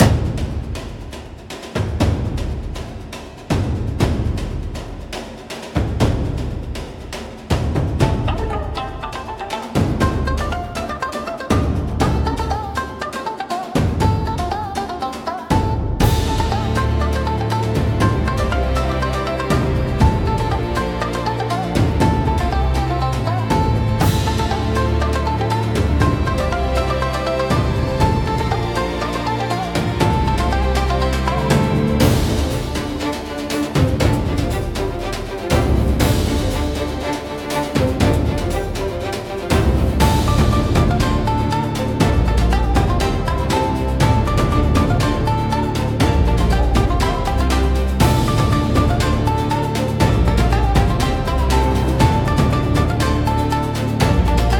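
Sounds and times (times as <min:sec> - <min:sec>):
cinematic Japanese-style thunder drums for battles: 0:00.0 - 0:13.1, 0:13.8 - 0:54.5.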